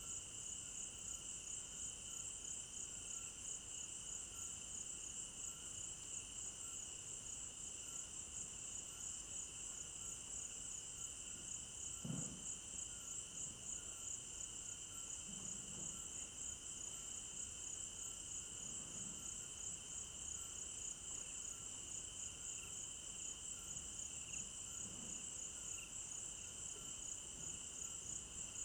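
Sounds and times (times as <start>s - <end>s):
night crickets chirping in an African village garden: 0.0s - 28.6s.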